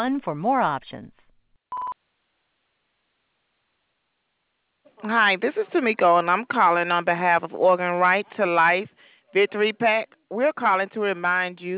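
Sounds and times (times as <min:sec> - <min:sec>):
speech: 0:00.0 - 0:01.2, 0:05.0 - 0:11.7
voicemail recording beep tone: 0:01.7 - 0:02.0.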